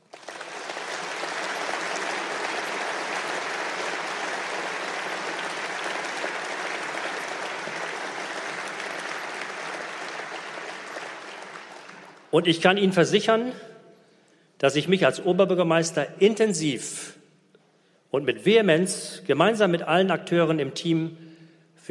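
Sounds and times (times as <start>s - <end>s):
large audience applause: 0.0s - 12.3s
speech: 12.3s - 13.7s, 14.6s - 17.2s, 18.1s - 21.2s.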